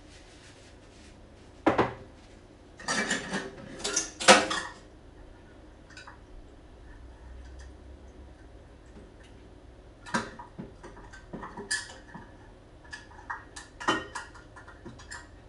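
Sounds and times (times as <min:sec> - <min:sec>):
quiet low hum: 0:00.0 - 0:15.4
dishes and utensils clattering while making banana bread: 0:02.8 - 0:04.8, 0:10.1 - 0:12.3, 0:12.9 - 0:15.3.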